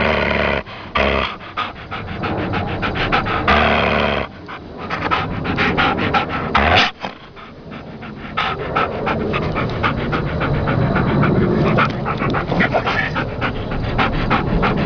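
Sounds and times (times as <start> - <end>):
dog panting: 0.0 - 14.8.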